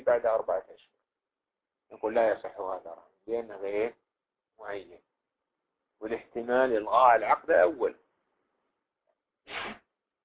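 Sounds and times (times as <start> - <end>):
speech: 0.1 - 1.0, 1.9 - 4.0, 4.6 - 5.1, 6.0 - 8.0, 9.5 - 9.8
person sneezing during a religious lecture on Islamic jurisprudence: 9.5 - 9.9.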